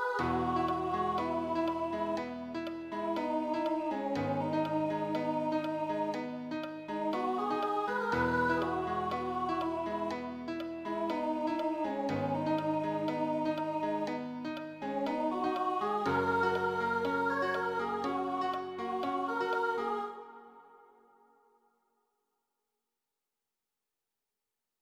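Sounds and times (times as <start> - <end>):
piano accompaniment: 0.2 - 20.1.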